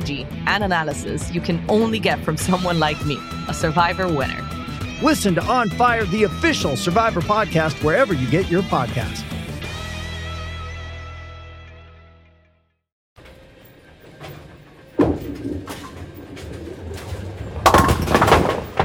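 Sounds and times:
speech: 0:00.1 - 0:09.3
bowling ball rolling: 0:13.2 - 0:18.8
bowling ball crashing into pins for a spare: 0:14.1 - 0:18.8.

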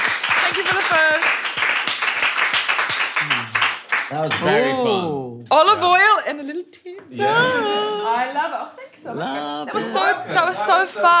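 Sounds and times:
audience round of applause: 0:00.0 - 0:04.3
speech: 0:04.1 - 0:11.1.

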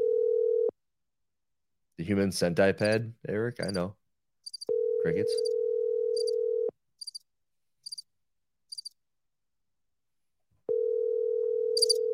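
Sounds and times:
telephone dial tone: 0:00.0 - 0:00.7, 0:04.7 - 0:06.7, 0:10.7 - 0:12.1
speech: 0:02.0 - 0:04.0, 0:05.0 - 0:05.5.

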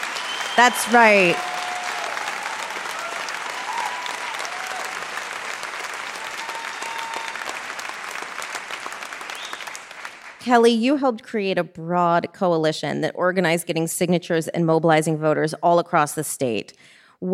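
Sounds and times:
faint cheering: 0:00.0 - 0:09.8
sustained audience applause: 0:00.0 - 0:10.5
speech: 0:00.6 - 0:01.6, 0:10.4 - 0:17.3.

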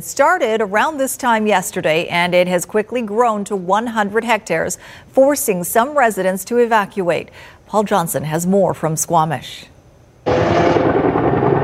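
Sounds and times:
speech: 0:00.0 - 0:11.0
firefighting helicopters with water buckets roaring: 0:10.3 - 0:11.6.

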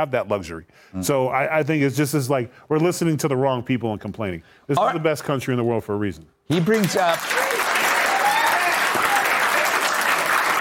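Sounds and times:
speech: 0:00.0 - 0:07.6
audience applause: 0:06.5 - 0:10.5.

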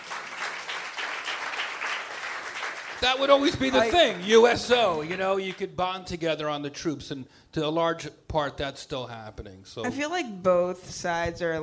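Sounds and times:
crowd applause: 0:00.0 - 0:05.7
speech: 0:03.0 - 0:11.6.

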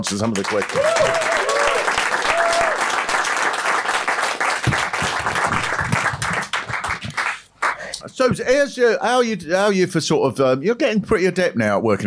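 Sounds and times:
speech: 0:00.0 - 0:01.6, 0:08.2 - 0:12.0
crowd applause: 0:00.0 - 0:08.0
crowd whooping and cheering: 0:00.7 - 0:03.2.

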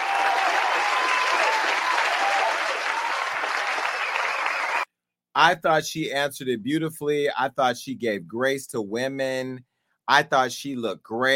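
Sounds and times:
applause: 0:00.0 - 0:04.9
speech: 0:05.4 - 0:11.3.

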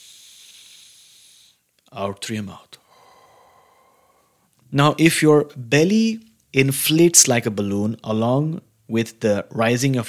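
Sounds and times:
deep inhale through the nose: 0:00.0 - 0:01.7, 0:02.8 - 0:04.5
speech: 0:02.0 - 0:02.8, 0:04.7 - 0:10.0.

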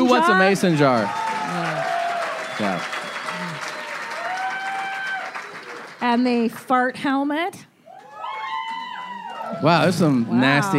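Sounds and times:
faint cheering: 0:00.0 - 0:05.8, 0:07.9 - 0:10.7
applause from a live comedy audience: 0:00.0 - 0:06.6, 0:08.0 - 0:10.7
speech: 0:00.1 - 0:01.7, 0:02.6 - 0:03.0, 0:06.0 - 0:07.7, 0:09.5 - 0:10.7.

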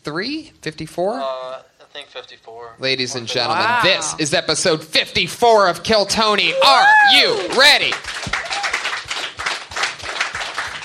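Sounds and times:
speech: 0:00.0 - 0:08.4
audience golf clapping lightly: 0:07.1 - 0:10.8.

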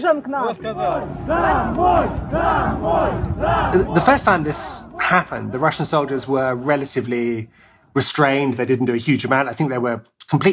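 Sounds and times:
speech: 0:00.0 - 0:10.5
protest crowd shouting chants: 0:00.5 - 0:07.5.

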